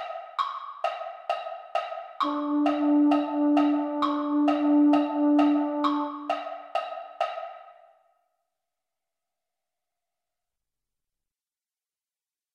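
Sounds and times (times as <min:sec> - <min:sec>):
baritone voice: 0:02.3 - 0:06.3.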